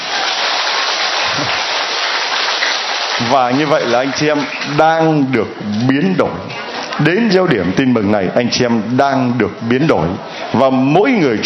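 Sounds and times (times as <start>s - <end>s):
round of applause: 0.0s - 4.6s
speech: 3.2s - 11.4s.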